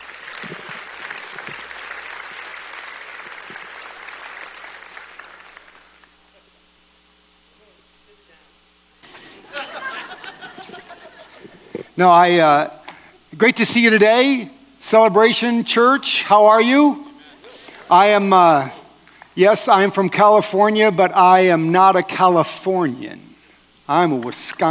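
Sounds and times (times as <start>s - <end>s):
church congregation applauding a guest pastor: 0.0s - 6.3s
people chuckling: 0.4s - 1.6s, 9.1s - 11.9s
speech: 12.0s - 17.0s, 17.9s - 18.8s, 19.4s - 23.3s, 23.9s - 24.6s.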